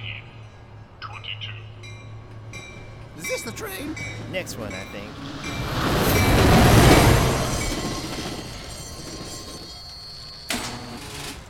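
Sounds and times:
mass transit train rumbling: 0:00.0 - 0:11.4
faint high squeals of mass transit train: 0:03.2 - 0:11.4
speech: 0:03.4 - 0:05.9.

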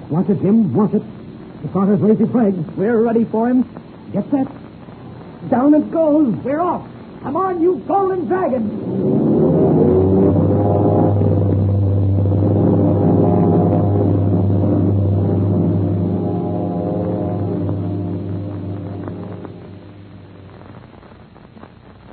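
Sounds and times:
speech: 0:00.1 - 0:04.6, 0:05.4 - 0:09.3
four airliner engines roaring at race start: 0:05.0 - 0:20.9.

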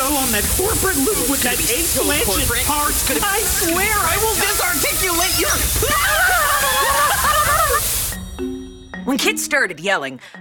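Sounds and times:
hose spraying water: 0:00.0 - 0:08.4
speech: 0:00.2 - 0:07.3, 0:09.1 - 0:10.3
laughter: 0:05.8 - 0:08.0.

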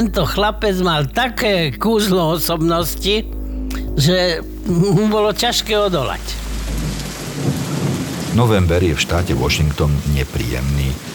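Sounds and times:
speech: 0:00.0 - 0:03.4, 0:04.0 - 0:06.4, 0:08.4 - 0:11.1
low rumbling undertone: 0:00.0 - 0:10.1
steady dense rain: 0:03.7 - 0:11.1.

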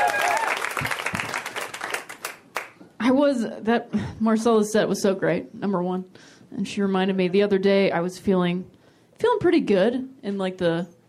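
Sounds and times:
audience applause for a comedian at a stand-up show in Boise: 0:00.0 - 0:02.8
speech: 0:03.0 - 0:11.0.

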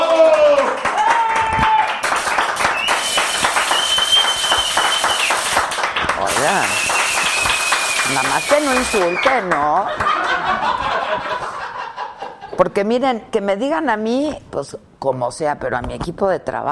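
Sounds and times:
crowd applauding: 0:00.0 - 0:10.8
high drawn-out whistles: 0:02.6 - 0:05.7, 0:06.4 - 0:09.4
speech: 0:08.6 - 0:11.3, 0:12.6 - 0:16.7
laughter: 0:09.7 - 0:12.6.

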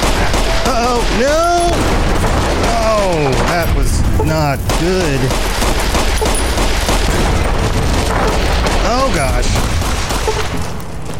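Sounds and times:
video game explosion: 0:00.0 - 0:10.8
speech: 0:01.1 - 0:01.5, 0:03.6 - 0:06.5, 0:08.2 - 0:10.4.

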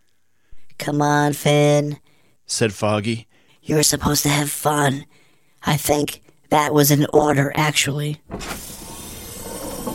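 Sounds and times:
speech: 0:00.8 - 0:08.6
pod door opening: 0:08.3 - 0:09.9.

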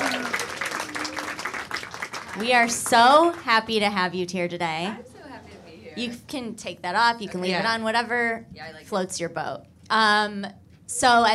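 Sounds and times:
audience applause: 0:00.0 - 0:03.5
speech: 0:02.4 - 0:05.1, 0:06.0 - 0:11.3.

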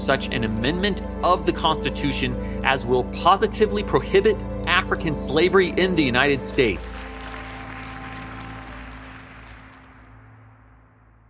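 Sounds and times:
speech: 0:00.0 - 0:07.1
crowd cheering and applause: 0:06.6 - 0:10.4.

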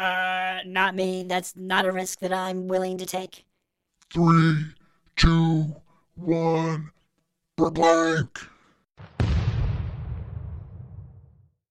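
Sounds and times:
speech: 0:00.6 - 0:03.5, 0:04.1 - 0:07.0, 0:07.6 - 0:09.2
robot's self-destruct explosion: 0:09.0 - 0:11.6.

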